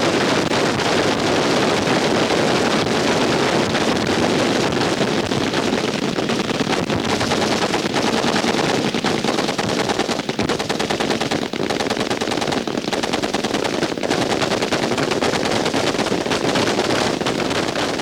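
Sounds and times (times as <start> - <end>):
machine gun fire: 0.0 - 18.0.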